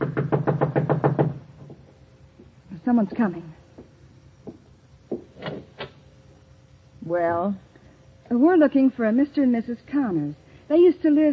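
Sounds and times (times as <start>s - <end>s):
knocking on a door: 0.0s - 1.8s, 3.2s - 5.6s
speech: 2.9s - 3.6s, 7.1s - 7.6s, 8.3s - 11.3s.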